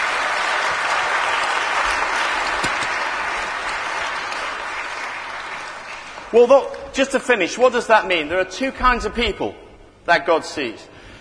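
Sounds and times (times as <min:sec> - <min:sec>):
audience applause: 0:00.0 - 0:06.4
speech: 0:06.3 - 0:10.9.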